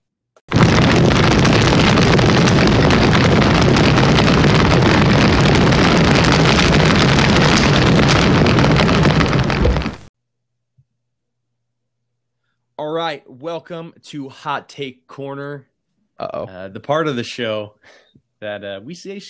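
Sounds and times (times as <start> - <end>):
fire sound effect: 0.5 - 10.1
speech: 13.5 - 19.2.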